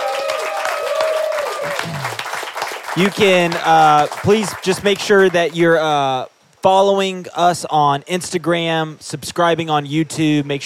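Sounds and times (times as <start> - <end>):
live audience applause: 0.0 - 5.6
speech: 3.0 - 10.6.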